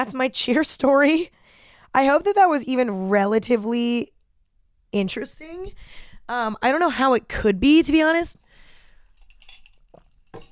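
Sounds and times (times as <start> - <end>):
speech: 0.0 - 4.1, 4.9 - 8.4
ceramic mug clinking: 9.2 - 10.4.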